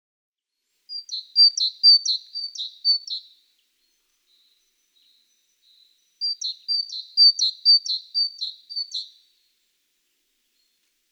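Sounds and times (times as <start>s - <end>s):
great tit singing see-saw phrases: 0.9s - 9.3s
speech: 1.4s - 2.4s.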